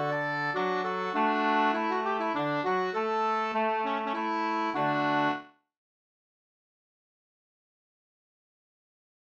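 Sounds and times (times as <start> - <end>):
minuet piece in three voices: 0.0 - 5.5.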